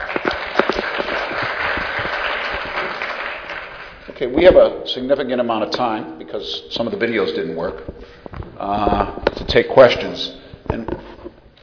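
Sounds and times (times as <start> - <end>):
audience applause: 0.0 - 4.2
speech: 4.2 - 11.2.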